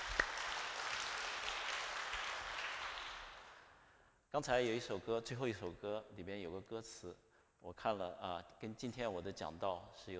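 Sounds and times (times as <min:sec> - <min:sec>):
audience applause: 0:00.0 - 0:03.6
speech: 0:04.4 - 0:10.1.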